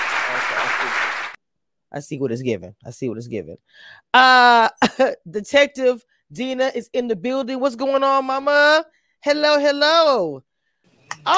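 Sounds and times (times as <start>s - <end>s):
crowd applause: 0.0s - 1.4s
speech: 0.3s - 1.2s, 1.9s - 10.5s.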